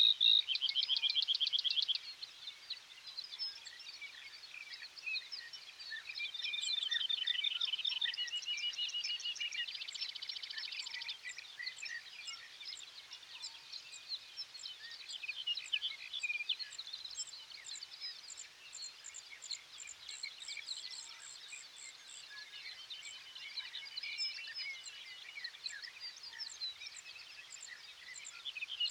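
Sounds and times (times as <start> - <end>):
dawn birds in the sage: 0.0 - 28.8.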